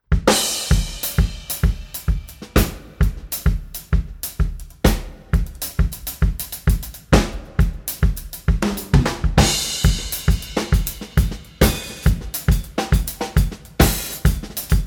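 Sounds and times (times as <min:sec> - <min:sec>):
drum set duet: 0:00.0 - 0:14.8.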